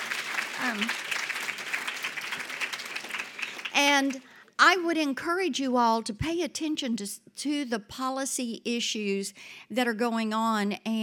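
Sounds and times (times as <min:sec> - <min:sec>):
audience applause: 0:00.0 - 0:04.2
speech: 0:00.7 - 0:01.1, 0:03.8 - 0:11.0.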